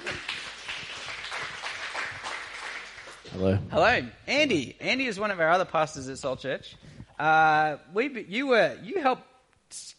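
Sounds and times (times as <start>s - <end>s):
audience clapping: 0.0s - 3.4s
speech: 3.4s - 9.9s.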